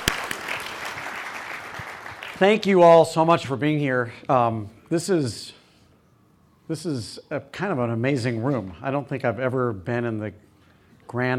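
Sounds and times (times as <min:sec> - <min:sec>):
audience applause: 0:00.0 - 0:02.6
speech: 0:02.4 - 0:05.6, 0:06.7 - 0:10.5, 0:11.1 - 0:11.3.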